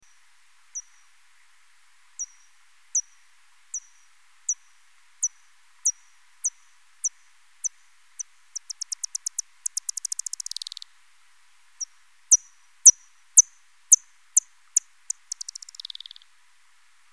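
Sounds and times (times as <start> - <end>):
faint hiss: 0.0 - 17.1
soprano pipistrelle echolocation ticks: 8.6 - 10.5, 15.1 - 16.1.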